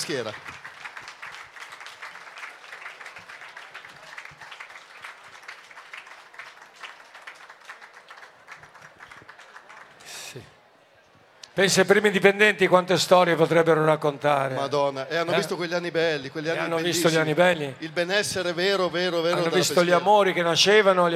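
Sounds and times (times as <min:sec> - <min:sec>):
speech: 0:00.0 - 0:00.6, 0:10.3 - 0:10.5, 0:11.6 - 0:21.1
audience applause: 0:00.0 - 0:10.5.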